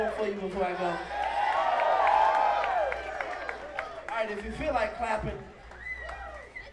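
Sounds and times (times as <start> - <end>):
speech: 0.0 - 1.2, 4.2 - 5.6
audience cheering and whooping: 0.8 - 4.0, 5.7 - 6.7.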